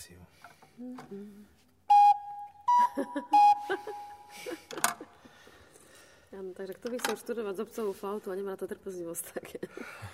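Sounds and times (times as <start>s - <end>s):
speech: 0.0s - 1.6s, 3.0s - 4.9s, 6.3s - 10.1s
organ pipes blown imitating a cuckoo call: 1.9s - 4.5s
laughter: 2.9s - 5.3s.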